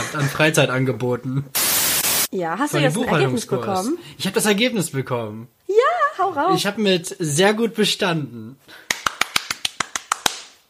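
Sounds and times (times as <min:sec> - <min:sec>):
speech: 0:00.1 - 0:01.7, 0:02.3 - 0:08.9
hand clapping: 0:08.8 - 0:10.6.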